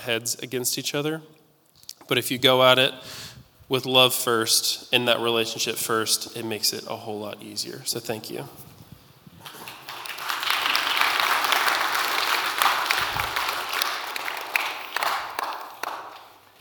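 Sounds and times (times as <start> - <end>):
speech: 0.0 - 1.4, 2.1 - 8.7
audience applause: 9.4 - 16.4.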